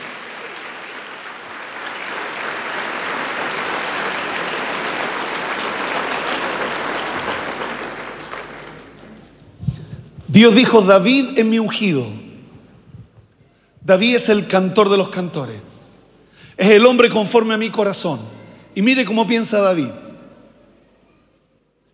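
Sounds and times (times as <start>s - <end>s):
audience applauding: 0.0s - 9.4s
speech: 10.4s - 12.3s, 13.9s - 15.7s, 16.6s - 20.0s.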